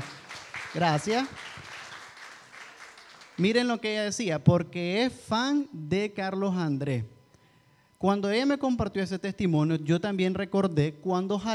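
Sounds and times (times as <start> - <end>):
audience applause: 0.0 - 3.4
speech: 0.7 - 1.6, 3.4 - 7.2, 8.0 - 11.5.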